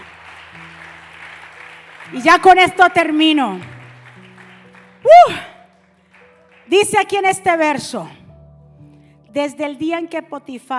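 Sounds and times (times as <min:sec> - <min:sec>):
audience applause: 0:00.0 - 0:06.7
speech: 0:02.1 - 0:03.7, 0:06.7 - 0:08.2, 0:09.3 - 0:10.7.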